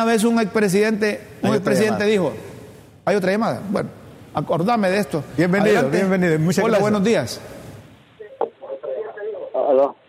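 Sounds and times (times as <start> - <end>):
speech: 0.0 - 2.5, 3.1 - 7.6, 9.7 - 10.0
television audio in the background of a phone call: 8.2 - 10.0.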